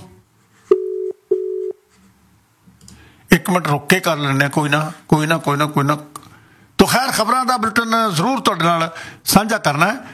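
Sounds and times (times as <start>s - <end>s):
telephone ringback tone while calling someone back after no answer: 0.7s - 1.8s
speech: 3.3s - 6.2s, 6.9s - 10.1s.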